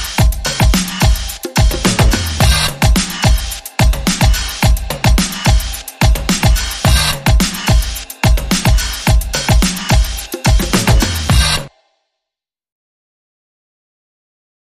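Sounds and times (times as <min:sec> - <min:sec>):
music beat: 0:00.0 - 0:11.7.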